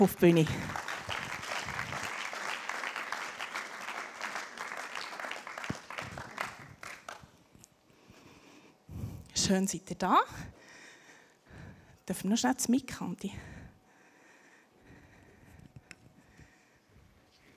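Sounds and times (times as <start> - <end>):
speech: 0.0 - 0.8, 9.5 - 10.6, 12.1 - 13.5
audience applause: 0.0 - 7.3.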